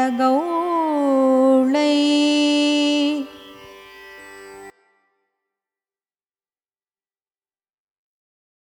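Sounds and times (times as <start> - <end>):
Carnatic music in raga Kannada Gowlai: 0.0 - 5.5.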